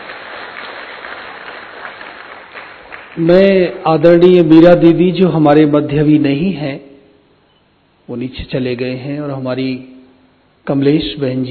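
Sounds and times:
room full of people applauding: 0.0s - 3.9s
speech: 3.2s - 6.8s, 8.1s - 9.9s, 10.6s - 11.4s.

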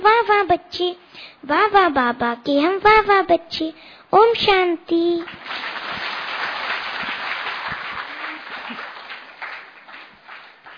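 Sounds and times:
speech: 0.6s - 5.7s
audience applause: 5.3s - 10.7s.

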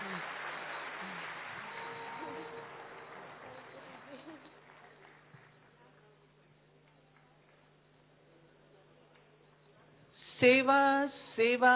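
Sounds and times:
audience applause: 0.0s - 5.8s
speech: 10.4s - 11.7s.

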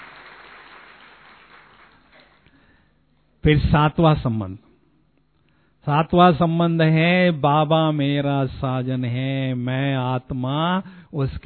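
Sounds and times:
crowd applauding: 0.0s - 2.5s
speech: 3.4s - 4.6s, 5.8s - 11.4s.

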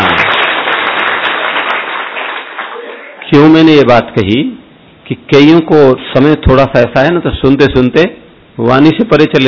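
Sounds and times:
audience clapping loudly: 0.0s - 3.3s
speech: 3.3s - 9.4s.

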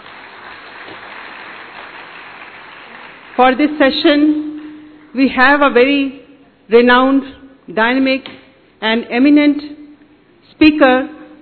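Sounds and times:
sustained applause from a large crowd: 0.0s - 3.4s
speech: 3.4s - 4.5s, 5.2s - 9.8s, 10.6s - 11.2s.

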